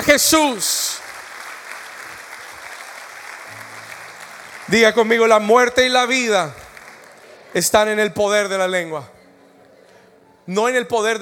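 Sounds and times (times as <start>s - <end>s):
speech: 0.0s - 1.0s, 4.7s - 6.6s, 7.5s - 9.2s, 10.5s - 11.1s
audience applauding: 0.0s - 8.7s.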